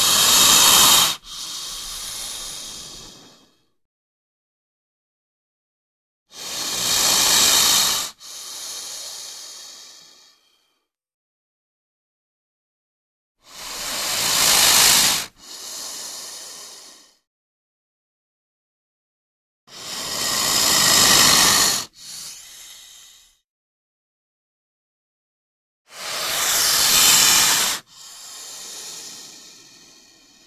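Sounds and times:
snake hissing: 0:00.0 - 0:03.7, 0:06.3 - 0:10.7, 0:13.4 - 0:17.2, 0:19.7 - 0:23.4, 0:25.9 - 0:30.4.

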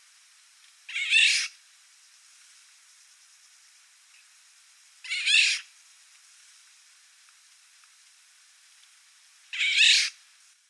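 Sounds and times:
Eurasian golden oriole giving a harsh cat-like squawk: 0:00.9 - 0:01.5, 0:05.1 - 0:05.6, 0:09.6 - 0:10.1.

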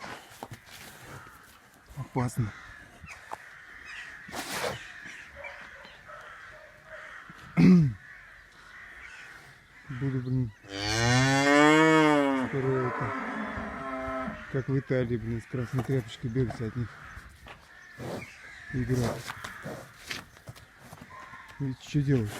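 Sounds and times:
speech: 0:02.1 - 0:02.6, 0:14.6 - 0:17.0, 0:18.7 - 0:19.4, 0:21.6 - 0:22.3
short grunts: 0:07.5 - 0:08.0
bull bellowing: 0:10.7 - 0:14.6.

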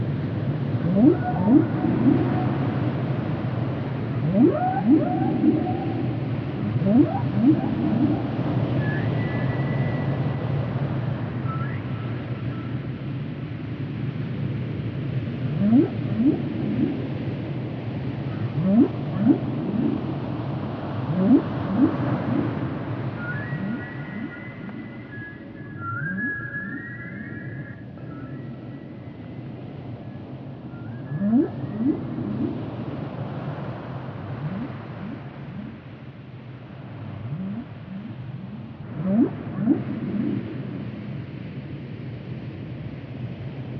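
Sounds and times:
steady low rumbling noise: 0:00.1 - 0:12.5, 0:13.6 - 0:43.7
whale calls with upward sweeps and whistle: 0:00.8 - 0:03.4, 0:04.0 - 0:10.1, 0:15.5 - 0:17.2, 0:18.3 - 0:29.0, 0:30.8 - 0:36.1, 0:37.0 - 0:41.1.

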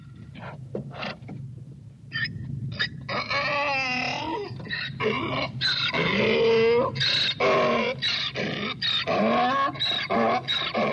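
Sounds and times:
donkey braying: 0:02.8 - 0:10.9.

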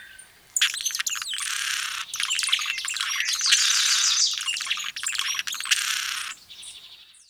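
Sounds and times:
blue-throated hummingbird song: 0:00.6 - 0:06.4.

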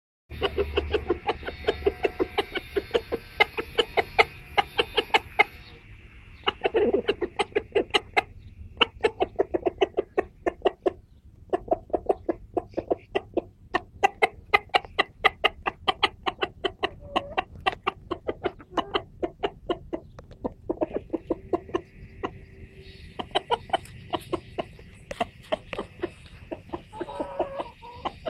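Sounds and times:
whine: 0:00.3 - 0:08.8, 0:20.8 - 0:28.2
rooster clucking: 0:00.3 - 0:28.2.

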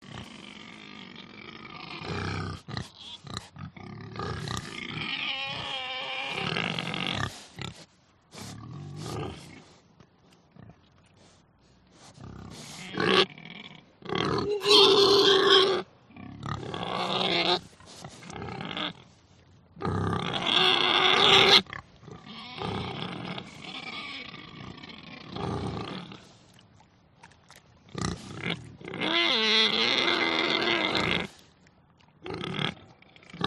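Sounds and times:
pigs squealing: 0:01.7 - 0:03.5, 0:04.4 - 0:07.4, 0:14.2 - 0:19.0, 0:20.1 - 0:26.1, 0:28.0 - 0:31.4.

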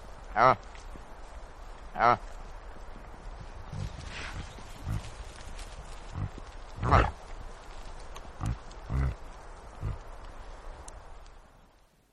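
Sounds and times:
background noise: 0:00.0 - 0:12.1
reindeer grunting: 0:03.6 - 0:05.4, 0:06.0 - 0:07.2, 0:08.3 - 0:10.1.

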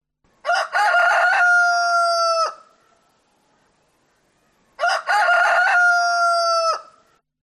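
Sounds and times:
rooster crowing: 0:00.4 - 0:02.8, 0:04.8 - 0:07.1.

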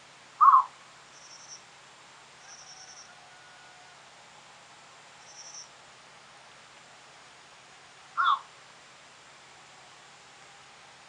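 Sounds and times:
bird giving a harsh crow-like call: 0:00.4 - 0:00.7, 0:08.2 - 0:08.5.

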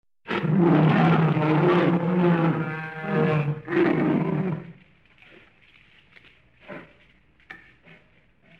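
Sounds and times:
bear growling and grunting: 0:00.3 - 0:04.8.

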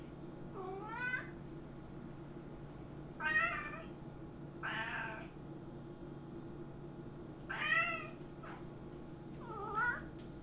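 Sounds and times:
cat meowing: 0:00.6 - 0:01.3, 0:03.2 - 0:03.9, 0:04.6 - 0:05.3, 0:07.5 - 0:08.6, 0:09.4 - 0:10.1.

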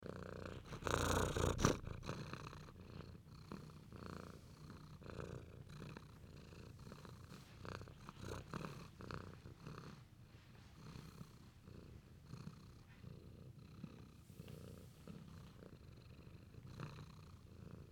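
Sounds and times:
cat purring: 0:00.0 - 0:17.9
soft rustling: 0:05.9 - 0:13.2, 0:14.1 - 0:15.8.

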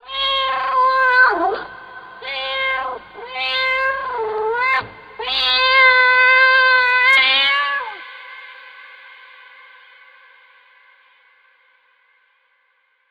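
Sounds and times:
cat meowing: 0:00.0 - 0:08.0.

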